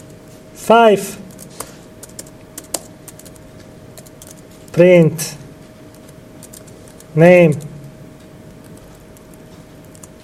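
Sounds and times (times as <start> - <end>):
faint constant hum: 0.0 - 10.2
speech: 0.7 - 1.2, 4.8 - 5.4, 7.2 - 7.7
typing Python code on a computer keyboard: 1.4 - 3.4, 4.0 - 4.4, 5.9 - 7.1, 8.6 - 10.2.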